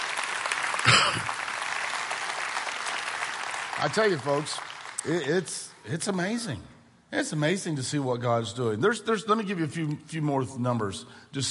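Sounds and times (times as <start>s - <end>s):
audience applause: 0.0s - 5.4s
speech: 1.0s - 1.4s, 3.8s - 11.5s.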